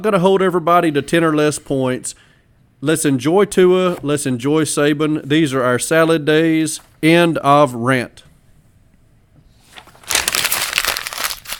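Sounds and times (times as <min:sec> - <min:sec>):
speech: 0:00.0 - 0:08.3
paper notes being crumpled and thrown away: 0:09.6 - 0:11.5.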